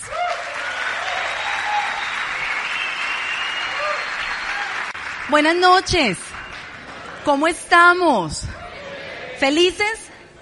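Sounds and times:
audience applause: 0:00.0 - 0:07.5
faint whistles or cheers: 0:00.1 - 0:04.9
speech: 0:05.3 - 0:06.3, 0:07.2 - 0:08.6, 0:09.4 - 0:10.0.

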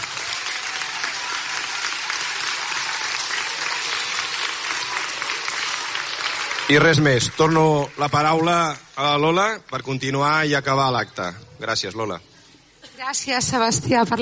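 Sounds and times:
audience applause: 0:00.0 - 0:09.5
speech: 0:06.7 - 0:12.3, 0:13.0 - 0:14.1.

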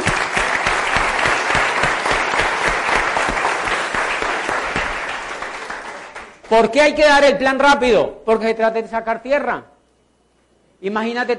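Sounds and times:
audience applause: 0:00.0 - 0:06.5
speech: 0:06.5 - 0:09.7, 0:10.8 - 0:11.3.

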